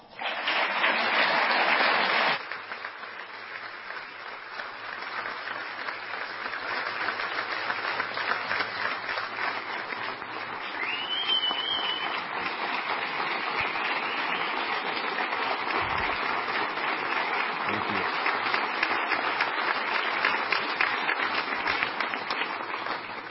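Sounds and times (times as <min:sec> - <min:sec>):
crowd clapping: 0:00.2 - 0:23.3
whoops and cheers: 0:10.7 - 0:12.2.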